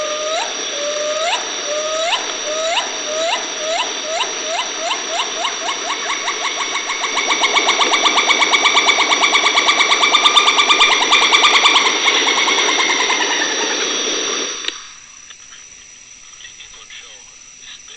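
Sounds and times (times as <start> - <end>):
gibbon calling with rising whooping notes: 0.0 - 13.8.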